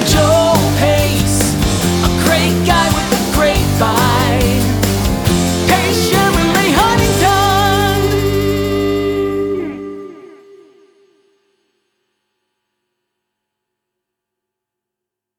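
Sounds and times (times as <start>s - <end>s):
jingle: 0.1s - 9.9s.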